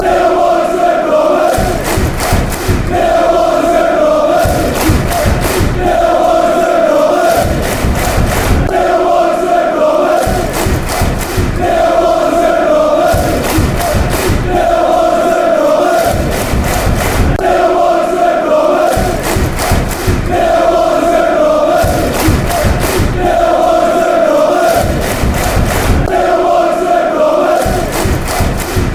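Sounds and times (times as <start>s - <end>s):
football fans chanting: 0.0s - 28.9s.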